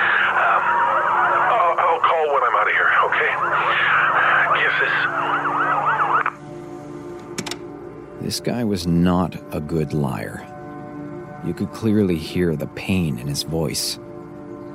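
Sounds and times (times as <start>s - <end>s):
rescue vehicle sirens wailing after an earthquake: 0.0s - 6.4s
speech: 2.3s - 5.7s, 8.2s - 10.5s, 11.4s - 14.1s.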